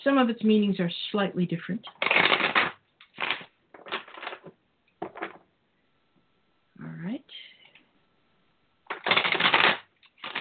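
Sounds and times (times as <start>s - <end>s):
speech: 0.0s - 2.3s
Golden Tarot deck of tarot cards being shuffled: 1.9s - 5.4s, 8.9s - 10.3s.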